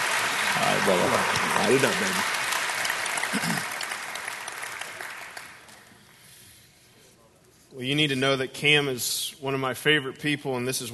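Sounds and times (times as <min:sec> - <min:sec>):
church congregation applauding a guest preacher at an evening service: 0:00.0 - 0:06.3
speech: 0:00.8 - 0:02.4, 0:03.3 - 0:03.7, 0:07.8 - 0:10.9.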